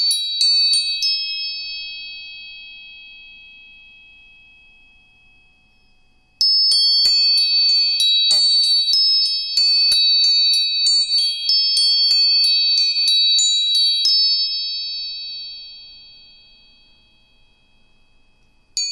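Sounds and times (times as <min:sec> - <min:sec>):
tuning fork struck and ringing: 0:00.0 - 0:18.9.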